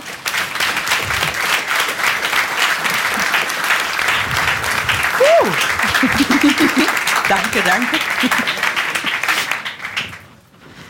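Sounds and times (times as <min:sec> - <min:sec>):
live audience applause: 0:00.0 - 0:10.4
laughter: 0:05.2 - 0:09.4
speech: 0:07.3 - 0:08.7.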